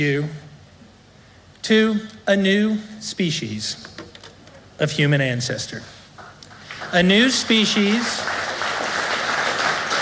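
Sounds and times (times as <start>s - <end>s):
speech: 0.0s - 0.4s, 1.6s - 4.1s, 4.8s - 6.0s, 6.8s - 8.4s
audience applause: 6.2s - 10.0s.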